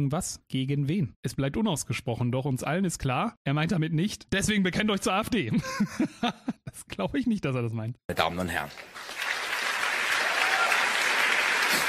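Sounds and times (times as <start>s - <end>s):
speech: 0.0s - 9.2s
audience applause: 8.2s - 11.8s.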